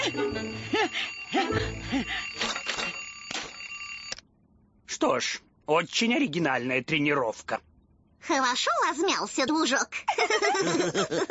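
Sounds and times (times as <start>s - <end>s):
speech: 0.0s - 2.6s, 5.0s - 11.2s
alarm clock ringing: 0.0s - 4.2s
laughter: 10.1s - 11.2s.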